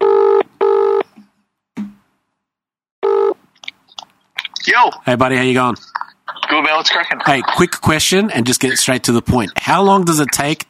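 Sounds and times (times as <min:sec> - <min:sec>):
telephone ringing: 0:00.0 - 0:01.1, 0:03.0 - 0:03.4
speech: 0:04.7 - 0:10.6
laughter: 0:05.8 - 0:09.0.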